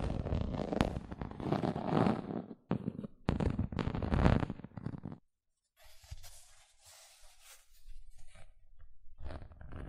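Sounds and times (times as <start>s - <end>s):
gentle scratching with soft rustling and low rumbling: 0.2s - 5.2s, 5.8s - 8.6s.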